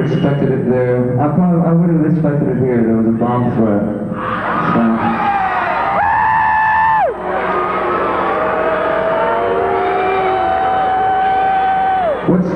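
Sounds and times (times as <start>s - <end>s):
speech: 0.1s - 5.2s
audience booing: 4.2s - 12.5s.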